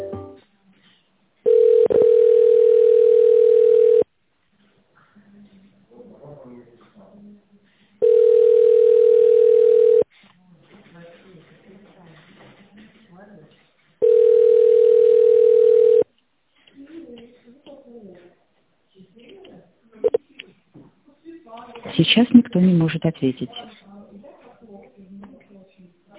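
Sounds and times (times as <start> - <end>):
telephone ringback tone: 1.5 - 4.0, 8.0 - 10.0, 14.0 - 16.0
speech: 22.7 - 23.8.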